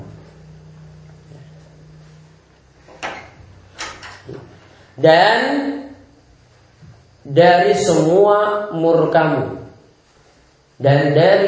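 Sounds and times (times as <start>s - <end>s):
low rumbling background: 0.0s - 8.0s
door swinging open: 2.9s - 4.5s
speech: 4.3s - 5.8s, 7.3s - 9.6s, 10.8s - 11.4s.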